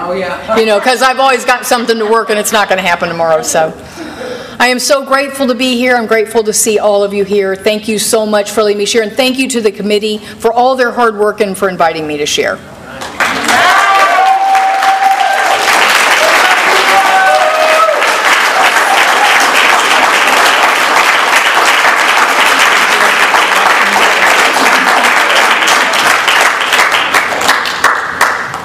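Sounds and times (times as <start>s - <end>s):
speech: 0.1s - 4.0s, 4.6s - 13.1s
audience applause: 13.0s - 28.6s
audience whooping and cheering: 13.2s - 27.2s.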